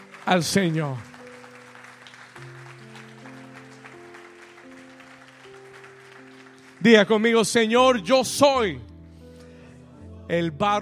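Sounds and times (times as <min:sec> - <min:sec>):
audience applause: 0:00.0 - 0:07.6
speech: 0:00.3 - 0:01.1, 0:06.8 - 0:08.9, 0:10.3 - 0:10.7.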